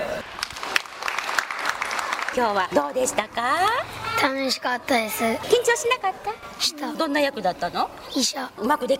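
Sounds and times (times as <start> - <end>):
audience applause after children's play: 0.1 - 2.6
speech: 2.4 - 8.9.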